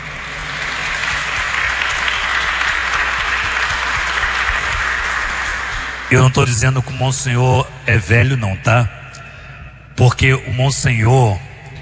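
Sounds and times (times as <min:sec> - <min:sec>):
audience applause: 0:00.0 - 0:06.9
speech: 0:06.1 - 0:09.0, 0:10.0 - 0:11.5.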